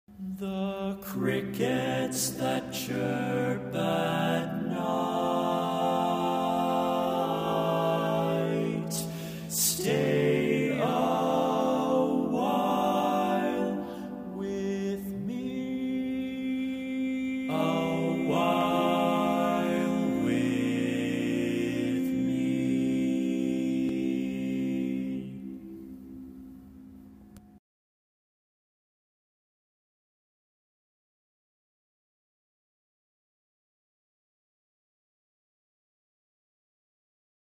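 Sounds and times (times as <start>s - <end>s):
barbershop tags all parts singing: 0.2s - 25.4s.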